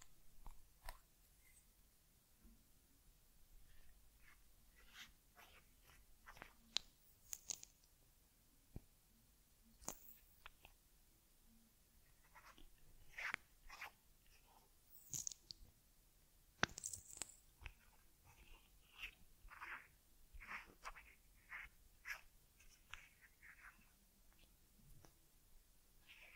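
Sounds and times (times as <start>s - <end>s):
quiet low hum: 0.0s - 26.3s
ear cleaning on a teddy, scratching and rubbing: 3.7s - 7.8s, 12.1s - 15.5s, 16.6s - 24.5s, 26.0s - 26.3s.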